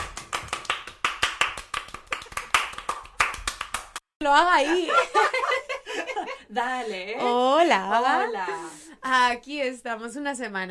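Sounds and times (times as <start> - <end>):
hands clapping: 0.0 - 4.0
speech: 4.2 - 5.4, 6.5 - 10.6
laughter: 4.6 - 8.9.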